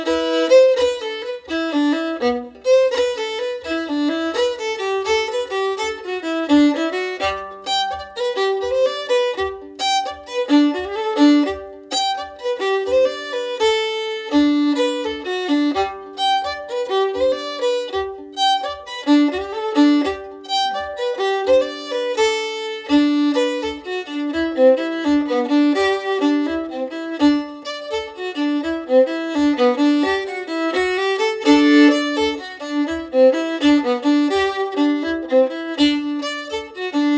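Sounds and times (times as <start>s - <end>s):
steady fiddle playing: 0.0s - 37.1s.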